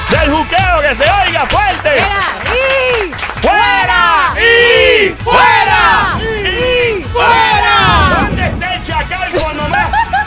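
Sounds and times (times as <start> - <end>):
audience applause: 0.0 - 4.4
crowd cheering and shouting: 0.0 - 10.2
speech: 0.2 - 2.5
laughter: 9.1 - 10.2.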